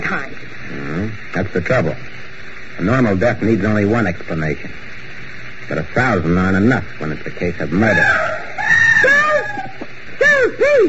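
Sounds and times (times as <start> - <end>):
speech: 1.4 - 4.9, 5.7 - 8.4
person screaming in a downstairs room in a radio drama: 7.9 - 10.8.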